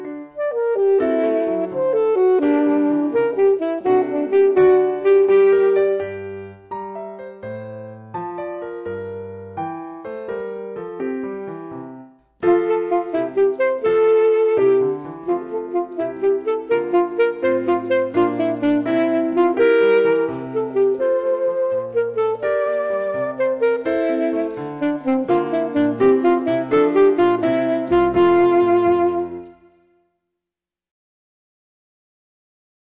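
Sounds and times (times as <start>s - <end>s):
musical accompaniment: 0.0s - 30.0s
alto singing: 0.4s - 6.0s, 12.4s - 30.0s.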